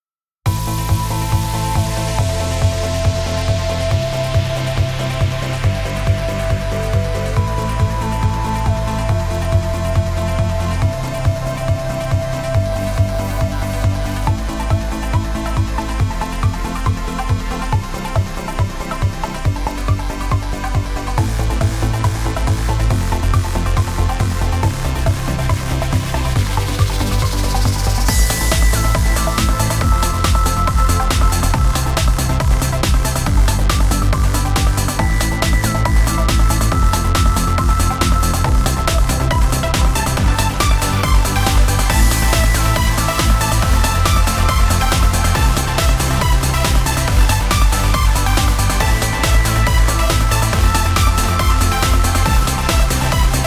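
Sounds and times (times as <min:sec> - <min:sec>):
trance music: 0:00.5 - 0:53.4.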